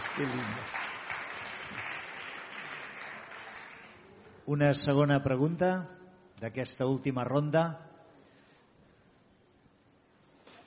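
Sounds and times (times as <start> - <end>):
audience applause: 0.0 - 4.1
speech: 0.2 - 0.8, 4.5 - 7.9.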